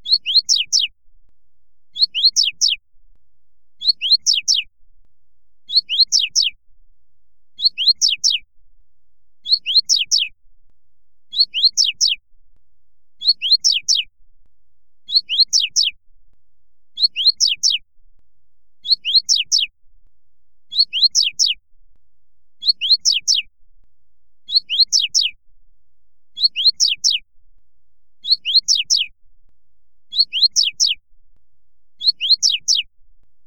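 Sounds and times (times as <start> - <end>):
Coleiro Tui Tui Fibra singing: 0.0 - 0.9, 1.9 - 2.8, 3.8 - 4.7, 5.6 - 6.6, 7.6 - 8.4, 9.4 - 10.3, 11.3 - 12.2, 13.2 - 14.1, 15.0 - 16.0, 16.9 - 17.8, 18.8 - 19.7, 20.7 - 21.6, 22.6 - 23.5, 24.4 - 25.4, 26.3 - 27.2, 28.2 - 29.1, 30.1 - 31.0, 32.0 - 32.9.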